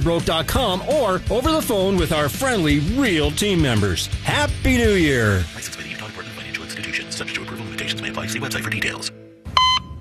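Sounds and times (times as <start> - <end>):
speech: 0.0 - 6.3, 8.1 - 9.2
heart monitor flatline tone: 9.4 - 10.0
heart monitor beeping: 9.5 - 10.0.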